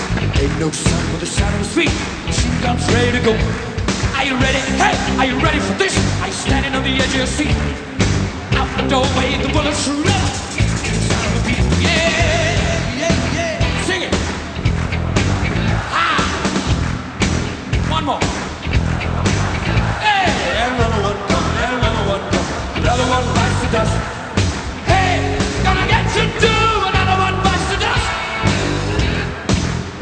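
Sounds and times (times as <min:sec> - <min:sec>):
rock music: 0:00.0 - 0:29.9.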